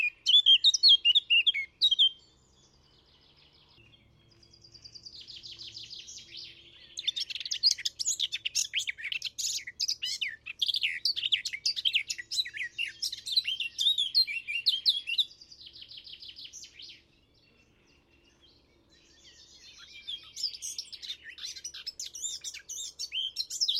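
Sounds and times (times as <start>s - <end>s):
Eurasian blackcap singing: 0.0s - 23.7s.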